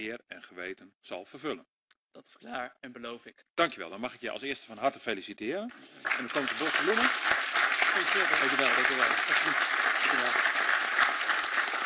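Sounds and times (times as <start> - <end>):
speech: 0.0 - 7.4, 8.0 - 10.5
warm applause: 5.7 - 11.8.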